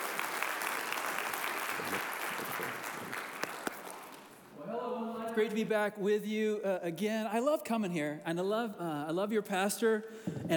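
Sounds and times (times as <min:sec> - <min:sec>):
church congregation applauding a guest pastor: 0:00.0 - 0:04.5
speech: 0:05.4 - 0:10.5.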